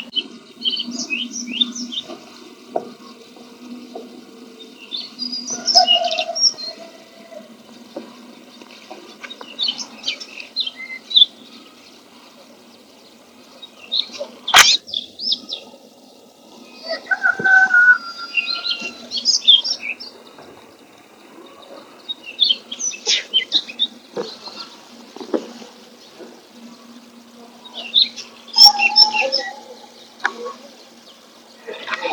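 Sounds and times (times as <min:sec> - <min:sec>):
Daurian redstart song with bright chirping phrases: 0:00.0 - 0:32.1
sharp click: 0:14.5 - 0:14.8.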